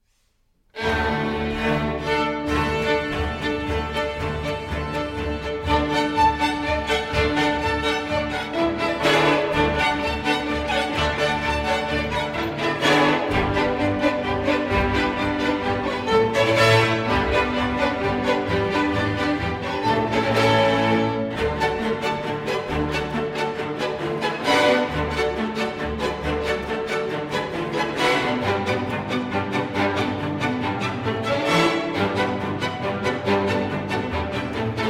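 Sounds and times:
folk dance music: 0.7s - 34.8s.

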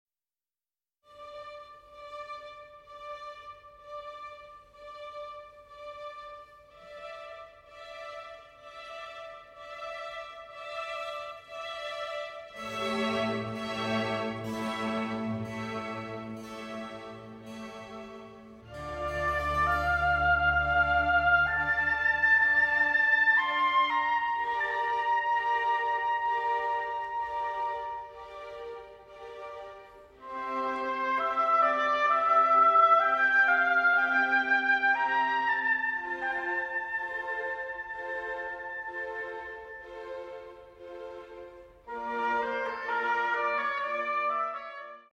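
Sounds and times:
oboe concerto adagio in D minor: 1.1s - 45.1s.

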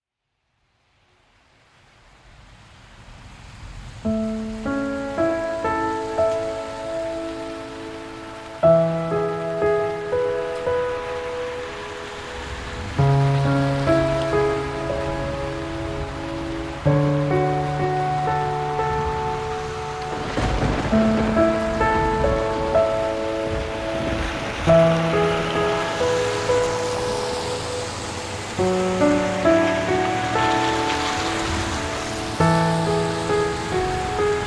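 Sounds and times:
rain: 0.2s - 34.4s
piano: 3.6s - 34.4s.

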